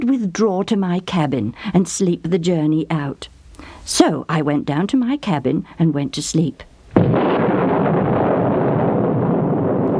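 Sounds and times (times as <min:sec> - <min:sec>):
speech: 0:00.0 - 0:07.2
thunder crash: 0:06.9 - 0:09.9.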